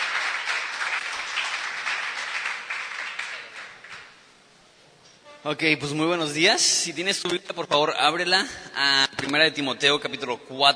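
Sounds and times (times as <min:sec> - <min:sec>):
audience applauding loudly: 0:00.0 - 0:04.2
speech: 0:05.4 - 0:10.7.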